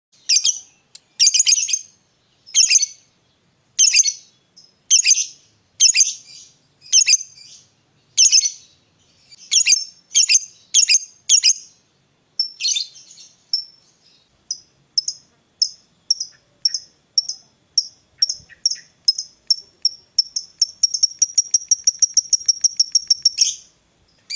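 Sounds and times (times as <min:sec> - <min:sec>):
lovebird chirping: 0:00.2 - 0:24.3.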